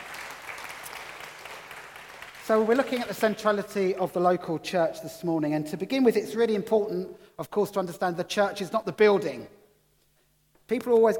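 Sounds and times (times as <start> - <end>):
audience applause: 0.0 - 3.6
speech: 2.5 - 9.6, 10.7 - 11.1.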